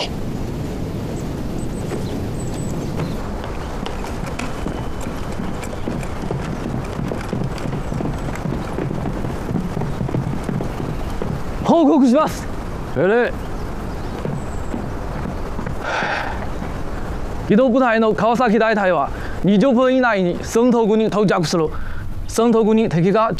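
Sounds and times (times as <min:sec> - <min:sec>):
horse hooves clip-clopping: 0:00.1 - 0:18.3
speech: 0:11.7 - 0:13.4, 0:17.5 - 0:23.3.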